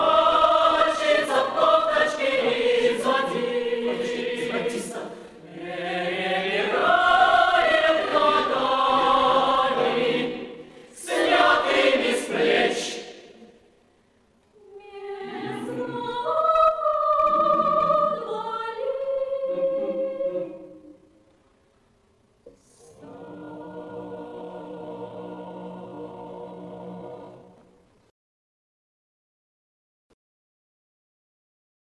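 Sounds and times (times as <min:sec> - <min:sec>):
chorus singing: 0:00.0 - 0:13.6, 0:14.6 - 0:21.0, 0:22.8 - 0:27.9.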